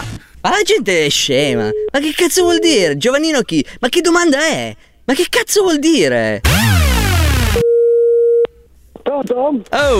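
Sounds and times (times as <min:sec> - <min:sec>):
speech: 0:00.4 - 0:06.7, 0:09.2 - 0:09.9
telephone busy tone after the other party hangs up: 0:01.7 - 0:02.8
loud burst of music: 0:06.4 - 0:07.6.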